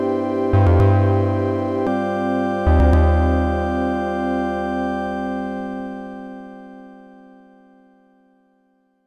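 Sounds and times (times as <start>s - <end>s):
OP-Z synthesizer drone: 0.0s - 7.1s.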